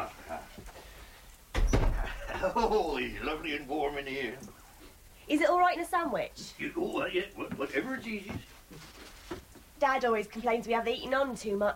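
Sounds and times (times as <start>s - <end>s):
door pushed shut on a freezing day: 1.5s - 2.3s
laughter: 2.0s - 3.4s
speech: 2.4s - 4.6s, 5.3s - 8.9s, 9.8s - 11.7s.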